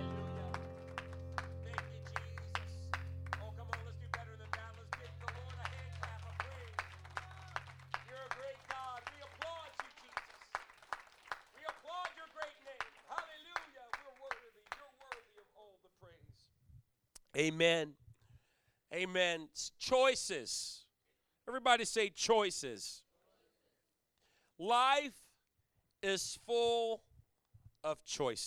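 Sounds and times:
low keyboard drone: 0:00.0 - 0:08.2
crowd clapping hands in a steady rhythmic beat: 0:00.0 - 0:15.5
speech: 0:17.4 - 0:18.0, 0:19.0 - 0:20.8, 0:21.5 - 0:23.0, 0:24.6 - 0:25.2, 0:26.0 - 0:27.1, 0:27.8 - 0:28.4.

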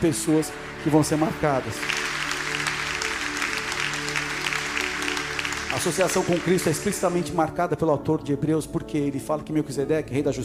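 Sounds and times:
speech: 0:00.0 - 0:02.1, 0:05.8 - 0:10.4
audience applause: 0:00.0 - 0:07.3.

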